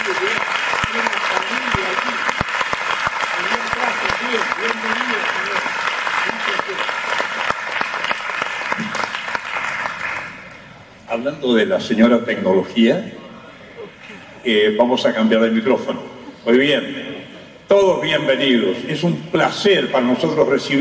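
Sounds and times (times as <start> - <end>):
audience applause: 0.0 - 10.6
speech: 11.2 - 13.2, 14.4 - 17.0, 17.7 - 20.7.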